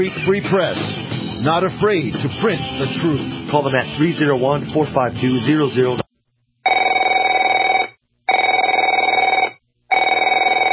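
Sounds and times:
speech: 0.0s - 6.0s
telephone ringing with a buzzy bell tone: 6.6s - 10.7s.

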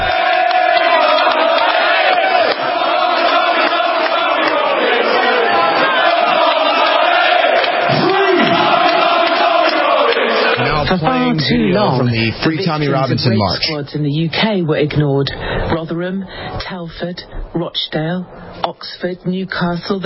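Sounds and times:
crowd cheering and chanting at march: 0.0s - 13.1s
speech: 10.9s - 20.0s.

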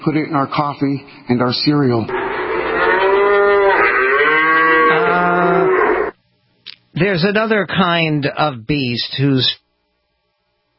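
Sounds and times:
speech: 0.0s - 2.2s, 7.0s - 9.6s
dairy cow bellowing for her calf: 2.1s - 6.2s.

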